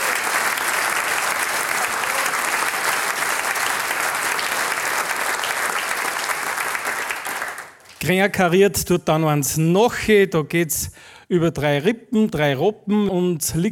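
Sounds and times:
audience applause: 0:00.0 - 0:08.0
speech: 0:08.0 - 0:13.7.

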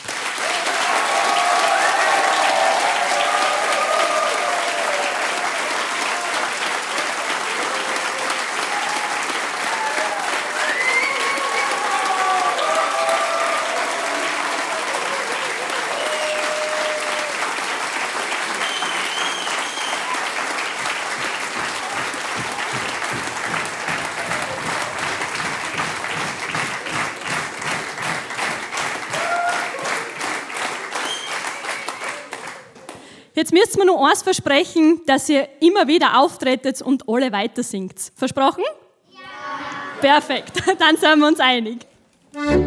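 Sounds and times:
audience applause for children's choir: 0:00.0 - 0:33.2
speech: 0:33.5 - 0:38.8, 0:40.0 - 0:42.6.

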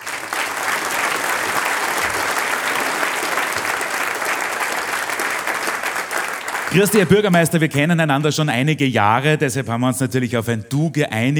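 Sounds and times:
audience applause: 0:00.0 - 0:07.4
speech: 0:06.7 - 0:11.3.

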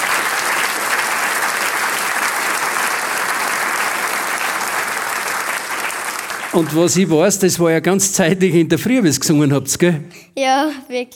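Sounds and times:
loud applause: 0:00.0 - 0:08.0
speech: 0:06.6 - 0:11.1.

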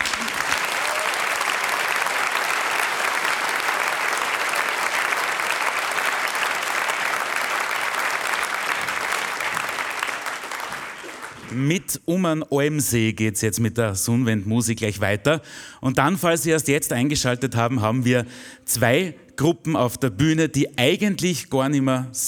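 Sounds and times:
audience applause: 0:00.0 - 0:11.7
speech: 0:11.6 - 0:22.2.

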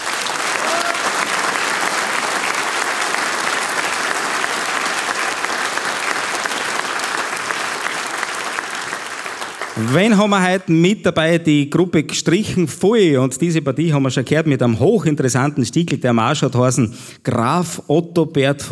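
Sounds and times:
audience applause: 0:00.0 - 0:10.3
speech: 0:09.8 - 0:18.6.

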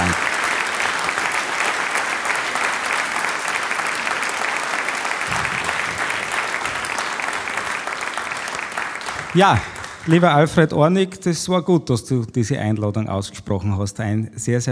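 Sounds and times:
audience applause: 0:00.0 - 0:10.7
speech: 0:09.4 - 0:14.6.

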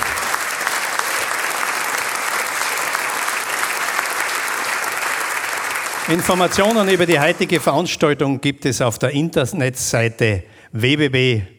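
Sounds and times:
audience applause in a hall: 0:00.0 - 0:08.1
speech: 0:06.1 - 0:11.5.

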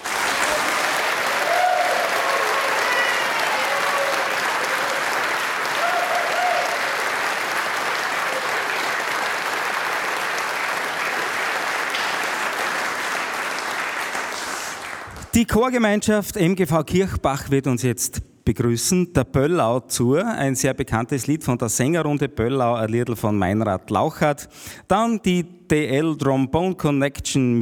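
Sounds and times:
large crowd applause: 0:00.0 - 0:15.4
faint cheers and whistles: 0:00.4 - 0:07.1
speech: 0:15.4 - 0:27.6.

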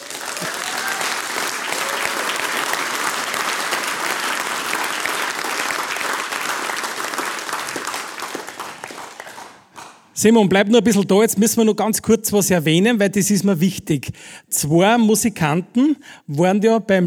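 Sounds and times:
applause: 0:00.0 - 0:10.1
speech: 0:00.4 - 0:00.7, 0:10.2 - 0:17.0.

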